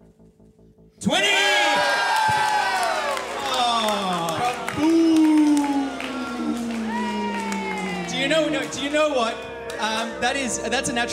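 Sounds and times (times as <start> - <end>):
speech: 1.0 - 1.4, 8.7 - 11.1
audience applause: 1.6 - 10.1.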